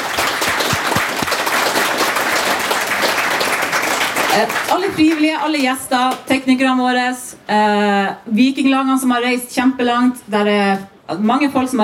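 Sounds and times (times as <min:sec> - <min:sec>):
crowd clapping: 0:00.0 - 0:06.2
speech: 0:04.4 - 0:11.8.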